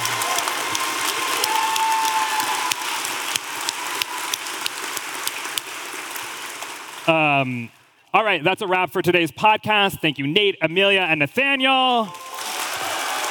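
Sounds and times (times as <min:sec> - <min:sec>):
audience applause: 0:00.0 - 0:07.7, 0:11.9 - 0:13.2
speech: 0:07.1 - 0:12.2.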